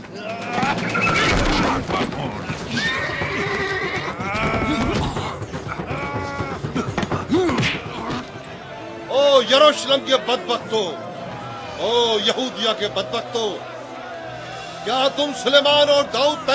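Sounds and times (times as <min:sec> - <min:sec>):
busy noisy background: 0:00.0 - 0:16.5
mules neighing: 0:00.2 - 0:06.7
speech: 0:09.5 - 0:11.1, 0:11.8 - 0:13.7, 0:14.8 - 0:16.5.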